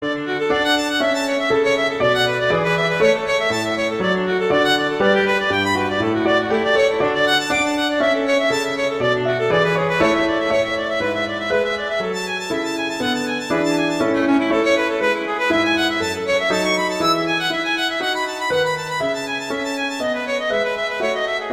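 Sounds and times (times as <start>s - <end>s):
allegro classical piece: 0.0s - 21.5s.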